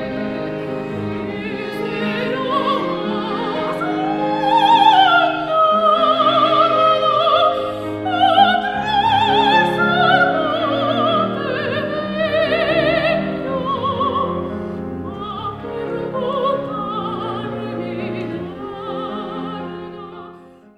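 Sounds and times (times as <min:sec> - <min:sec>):
soprano singing in a recital: 0:00.0 - 0:20.7.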